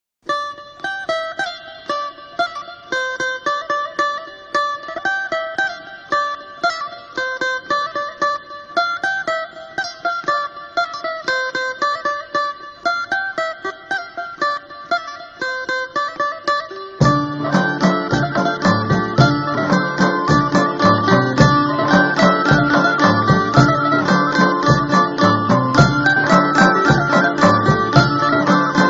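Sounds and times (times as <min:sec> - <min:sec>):
Albanian ciftelia playing: 0:00.4 - 0:28.8.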